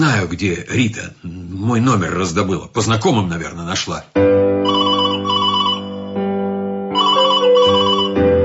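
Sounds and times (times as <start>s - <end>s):
speech: 0.0s - 4.4s
telephone ringing with warbling electronic trills: 4.6s - 6.2s, 7.0s - 8.3s.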